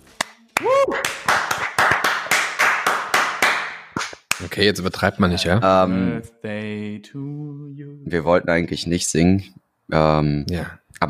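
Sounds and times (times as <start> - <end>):
applause: 0.2 - 4.5
speech: 4.6 - 7.4, 8.1 - 11.0.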